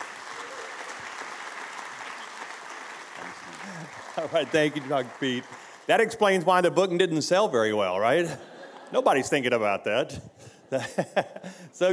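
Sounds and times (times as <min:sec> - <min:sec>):
audience applause welcoming a guest speaker in the UK: 0:00.0 - 0:06.2
speech: 0:04.2 - 0:11.9
laughter: 0:08.2 - 0:09.6, 0:10.7 - 0:11.6.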